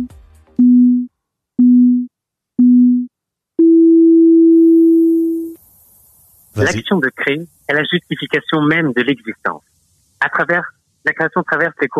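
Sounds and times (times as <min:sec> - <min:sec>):
electronic countdown beeps: 0:00.0 - 0:05.6
speech: 0:06.6 - 0:11.9.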